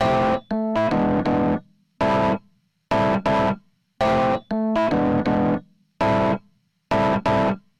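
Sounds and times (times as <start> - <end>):
electric piano: 0.0 - 7.6
guitar with hybrid neural overdrive: 0.0 - 7.6.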